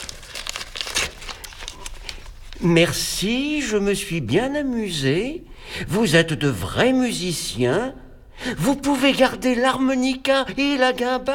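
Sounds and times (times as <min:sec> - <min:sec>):
paper envelope ripped open: 0:00.0 - 0:02.7
speech: 0:02.6 - 0:11.3.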